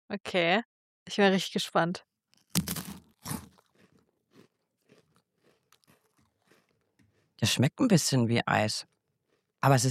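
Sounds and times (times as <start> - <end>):
speech: 0.1 - 2.7, 7.4 - 8.9, 9.6 - 9.8
crunching and chewing of a freeze-dried white snack stick: 2.3 - 7.7, 8.5 - 9.8.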